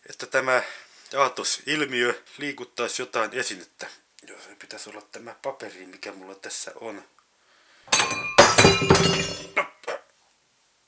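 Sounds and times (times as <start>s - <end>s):
speech: 0.2s - 7.2s, 7.9s - 9.7s
glass fragments tinkling: 7.9s - 9.5s
wine glass shattering: 7.9s - 9.6s.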